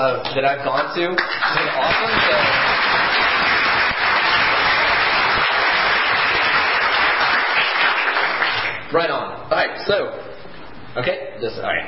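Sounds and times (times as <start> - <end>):
speech: 0.0 - 3.3, 8.9 - 11.8
audience applause for the organizers: 1.2 - 8.8.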